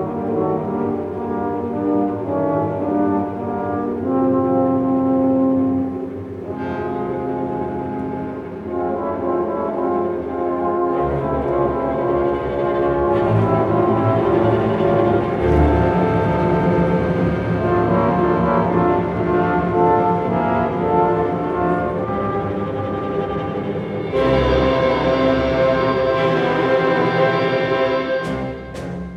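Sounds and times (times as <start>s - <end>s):
French horns playing a dark menacing theme: 0.0s - 29.1s.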